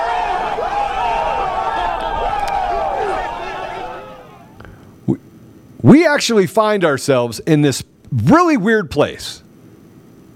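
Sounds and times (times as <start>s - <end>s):
crowd cheering sound effect: 0.0s - 4.7s
speech: 5.8s - 9.4s.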